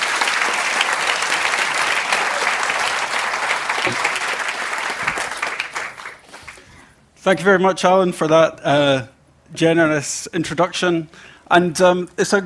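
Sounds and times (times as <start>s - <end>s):
audience applause welcoming an author at the Edinburgh Book Festival: 0.0s - 6.7s
speech: 3.9s - 4.1s, 7.2s - 12.4s.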